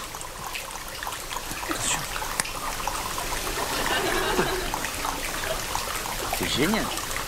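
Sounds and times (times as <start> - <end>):
flowing water sound effect evoking a kayak being paddled: 0.0 - 7.2
laughter: 3.4 - 5.7
speech: 6.6 - 7.0.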